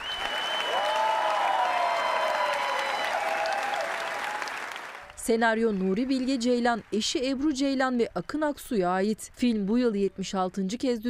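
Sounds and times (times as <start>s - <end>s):
faint tonal whistles or cheers: 0.0s - 4.9s
audience applause after film premiere screening: 0.0s - 7.0s
speech: 5.3s - 11.0s.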